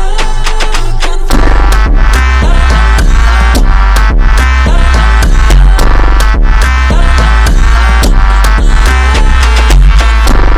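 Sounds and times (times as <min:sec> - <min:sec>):
Brazilian funk music: 0:00.1 - 0:10.5.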